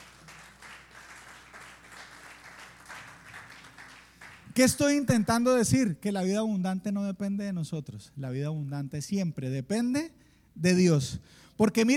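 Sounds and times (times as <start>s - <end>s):
audience applauding: 0.0s - 4.6s
speech: 4.6s - 11.9s.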